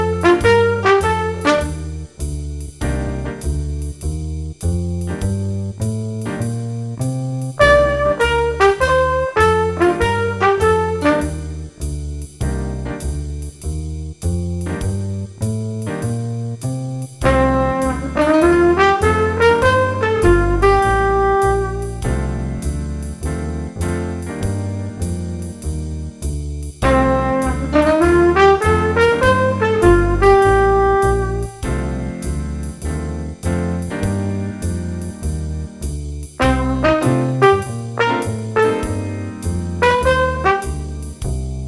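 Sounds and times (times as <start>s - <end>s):
trumpet: 0.0s - 2.2s, 7.6s - 11.7s, 17.2s - 22.6s, 26.8s - 33.3s, 36.4s - 41.3s
jazz improvisation in C minor: 0.0s - 41.6s.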